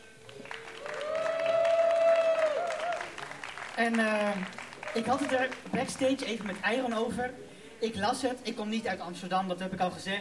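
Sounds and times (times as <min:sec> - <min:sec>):
audience applause: 0:00.2 - 0:07.1
speech: 0:03.8 - 0:10.1.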